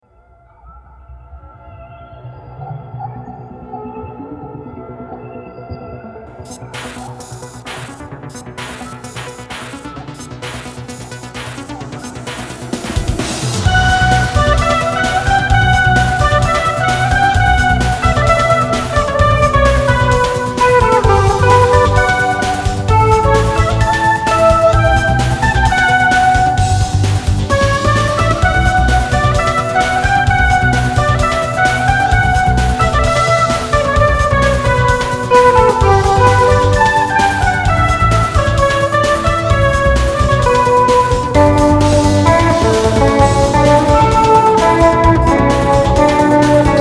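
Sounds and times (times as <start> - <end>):
guitar cover of battle music: 11.8 - 46.7.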